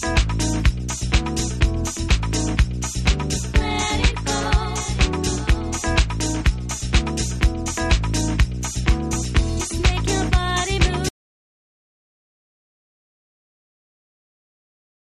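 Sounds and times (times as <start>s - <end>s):
house music: 0.0s - 11.1s.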